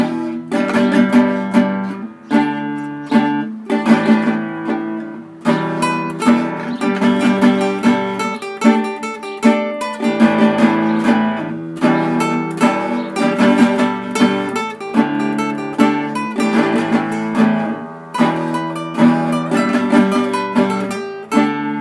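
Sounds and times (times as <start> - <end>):
guitar: 0.0 - 21.7.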